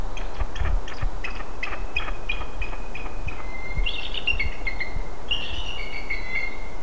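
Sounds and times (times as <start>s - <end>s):
bald eagles chirping: 0.2s - 6.6s.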